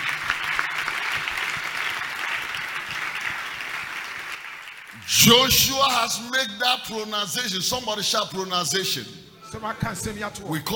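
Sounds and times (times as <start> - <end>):
audience clapping: 0.0 - 6.2
speech: 5.1 - 10.7.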